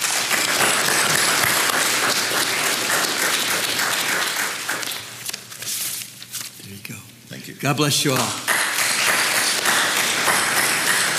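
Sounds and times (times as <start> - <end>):
crowd applauding: 0.0 - 5.2, 8.1 - 11.1
speech: 7.6 - 8.4.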